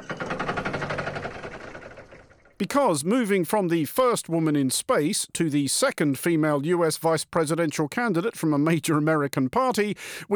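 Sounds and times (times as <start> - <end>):
gear-grinding sound effect: 0.0 - 2.6
speech: 2.6 - 10.3.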